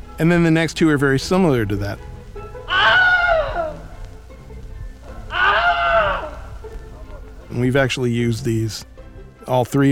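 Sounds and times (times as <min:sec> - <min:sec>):
speech: 0:00.2 - 0:02.1, 0:07.6 - 0:08.9, 0:09.5 - 0:09.9
scream of pain: 0:02.6 - 0:03.9, 0:05.1 - 0:06.5.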